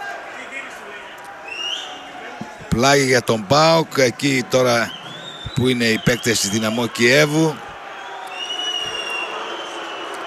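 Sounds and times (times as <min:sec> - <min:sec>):
football fans booing at a PAOK vs Dynamo Kyiv match: 0:00.0 - 0:10.2
thin high whistling from football fans: 0:01.5 - 0:02.0, 0:04.8 - 0:06.8, 0:08.0 - 0:10.0
speech: 0:02.8 - 0:05.0, 0:05.6 - 0:07.6.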